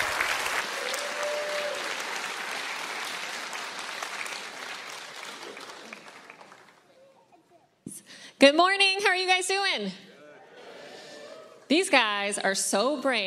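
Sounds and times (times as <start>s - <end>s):
crowd applause: 0.0s - 7.1s
speech: 8.4s - 10.1s, 11.7s - 13.2s.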